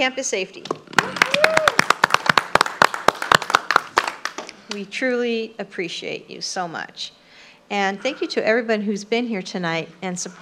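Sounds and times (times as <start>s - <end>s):
speech: 0.0s - 0.8s, 4.7s - 10.4s
crowd applauding: 0.9s - 4.5s.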